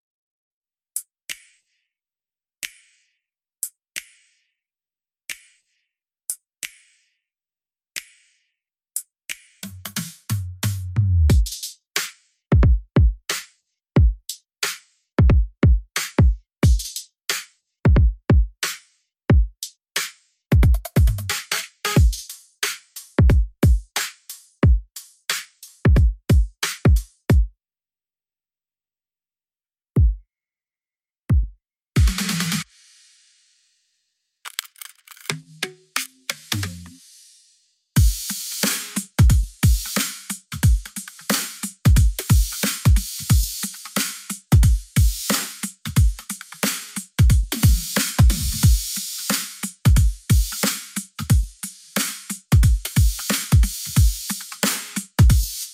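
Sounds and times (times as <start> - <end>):
drums: 9.3 - 27.5, 31.3 - 33.3, 35.3 - 37.4, 38.0 - 55.7.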